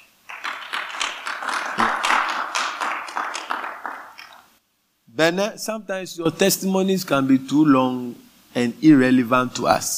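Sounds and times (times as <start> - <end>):
audience clapping: 0.0 - 4.5
speech: 5.2 - 9.9.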